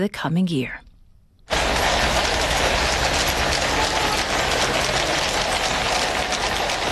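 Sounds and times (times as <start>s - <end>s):
horses' hooves in London: 1.5s - 6.9s.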